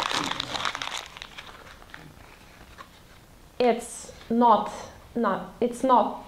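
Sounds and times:
piece of paper being crumpled by hand: 0.0s - 3.2s
quiet rustling: 1.3s - 3.3s
speech: 3.6s - 6.2s.

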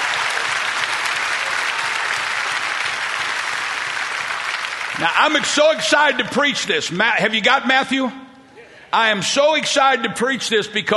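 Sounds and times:
loud applause from a large group: 0.0s - 5.9s
speech: 5.0s - 8.2s, 8.9s - 10.9s.

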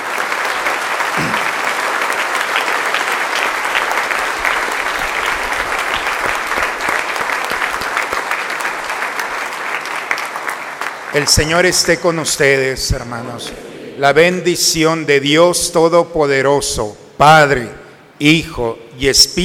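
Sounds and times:
audience applause: 0.0s - 11.8s
speech: 11.2s - 19.4s.

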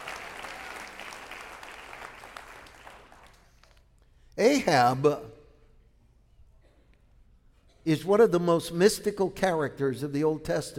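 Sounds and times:
church congregation clapping hands: 0.0s - 3.9s
speech: 4.4s - 5.3s, 7.9s - 10.7s.

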